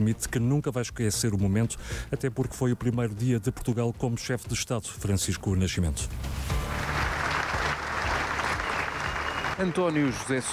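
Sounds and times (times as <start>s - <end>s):
speech: 0.0s - 6.8s, 9.6s - 10.5s
sustained applause from a large crowd: 6.5s - 10.5s.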